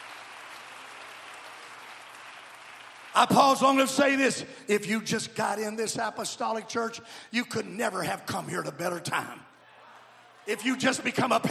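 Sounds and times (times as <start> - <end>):
audience clapping: 0.0 - 4.2
speech: 3.2 - 9.5, 10.4 - 11.4.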